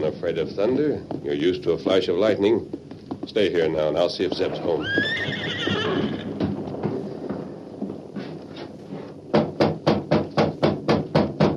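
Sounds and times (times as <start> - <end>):
speech: 0.0 - 6.3
horse hooves clip-clopping: 0.0 - 11.5
horse whinnying: 4.5 - 6.5.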